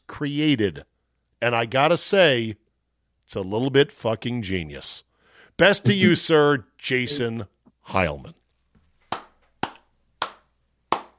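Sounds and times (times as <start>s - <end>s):
speech: 0.2s - 2.6s, 3.3s - 8.4s
one person clapping hands: 9.1s - 11.1s.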